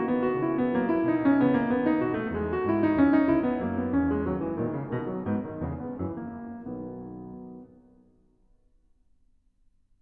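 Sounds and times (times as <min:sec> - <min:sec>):
prelude in B major: 0:00.0 - 0:07.8.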